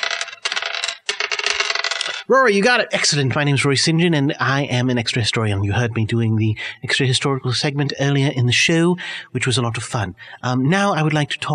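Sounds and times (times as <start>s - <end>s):
dice being rolled: 0.0s - 2.2s
speech: 2.3s - 11.5s.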